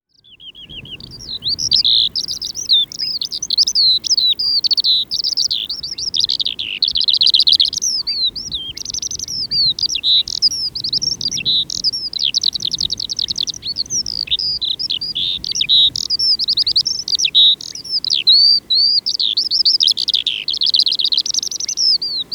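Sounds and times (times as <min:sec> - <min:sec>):
Eurasian skylark singing in the reeds: 0:00.0 - 0:22.3.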